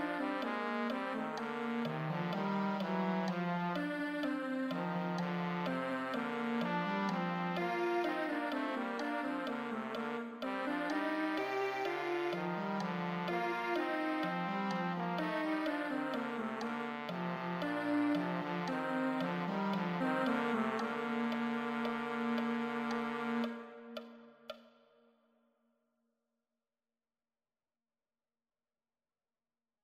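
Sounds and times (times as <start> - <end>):
trombone duet: 0.0 - 23.9.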